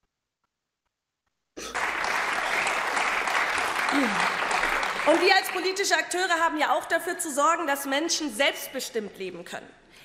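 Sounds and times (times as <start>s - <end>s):
audience applause: 1.6s - 5.8s
speech: 3.9s - 4.3s, 5.0s - 9.8s.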